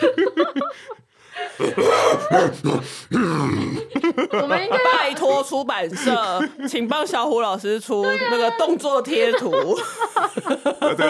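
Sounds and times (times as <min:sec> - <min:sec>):
laughter: 0:00.0 - 0:07.3, 0:08.6 - 0:11.0
person imitating an angry gorilla's grunting huffs and roar: 0:01.6 - 0:04.0
speech: 0:01.6 - 0:11.0.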